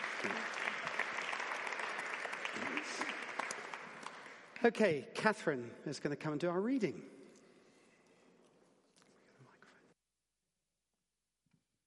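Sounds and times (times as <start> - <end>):
audience applause: 0.0 - 4.6
speech: 4.6 - 7.2.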